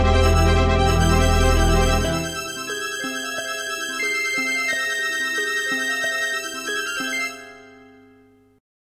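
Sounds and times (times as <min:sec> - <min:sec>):
wavetable sound card intro music: 0:00.0 - 0:08.1.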